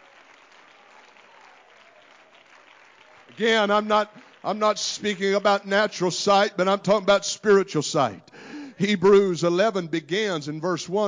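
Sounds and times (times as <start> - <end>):
audience clapping: 0.0 - 6.1
speech: 3.3 - 11.0.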